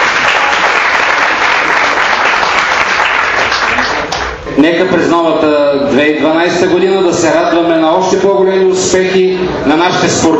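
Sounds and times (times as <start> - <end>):
audience applause: 0.0 - 4.4
speech: 4.6 - 10.3.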